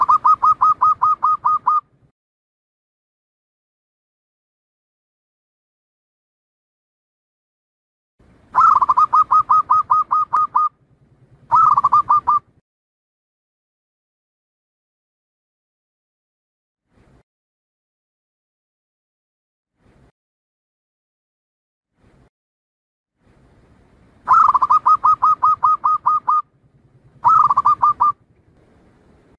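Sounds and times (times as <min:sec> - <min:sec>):
Zebra dove staccato cooing song: 0:00.0 - 0:02.0, 0:08.5 - 0:10.8, 0:11.4 - 0:12.6, 0:24.2 - 0:28.3.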